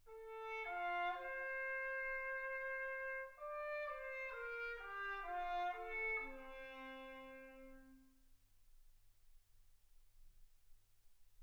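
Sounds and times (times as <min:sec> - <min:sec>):
trumpet: 0:00.0 - 0:08.2.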